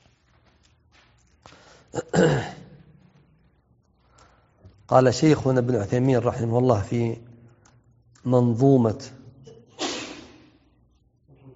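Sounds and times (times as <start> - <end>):
speech: 4.9 - 7.3, 8.2 - 9.2
sneeze: 9.5 - 10.6.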